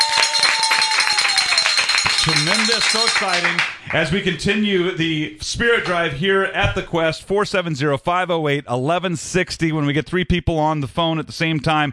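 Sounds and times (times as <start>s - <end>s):
hand bell being rung: 0.0s - 3.5s
speech: 2.4s - 11.9s.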